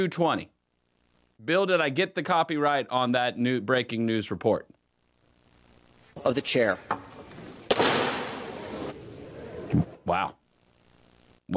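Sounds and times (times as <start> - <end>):
speech: 0.0 - 0.6, 1.4 - 4.8, 6.2 - 7.1, 9.7 - 10.4
gavel bang: 7.6 - 8.6.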